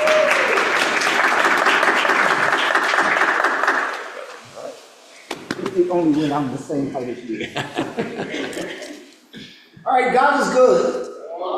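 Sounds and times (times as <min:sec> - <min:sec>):
round of applause: 0:00.0 - 0:04.4
speech: 0:05.8 - 0:08.9, 0:09.9 - 0:11.5
laughter: 0:07.2 - 0:09.1.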